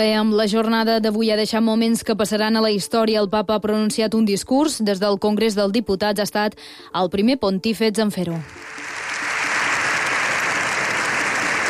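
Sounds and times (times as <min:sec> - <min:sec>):
speech: 0:00.0 - 0:08.8
long ovation applause: 0:08.4 - 0:11.6.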